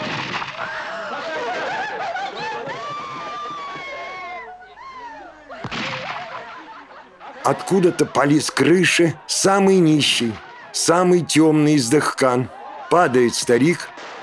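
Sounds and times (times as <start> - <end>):
gunshot in a film scene: 0.0 - 0.8, 5.6 - 6.3, 13.9 - 14.2
laughter: 0.6 - 14.0
agitated voices in a film scene: 7.1 - 14.0
speech: 7.4 - 13.9.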